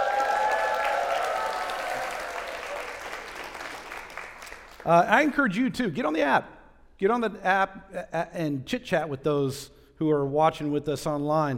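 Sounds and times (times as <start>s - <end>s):
church congregation applauding and cheering during a morning worship service: 0.0s - 5.3s
speech: 4.8s - 11.5s.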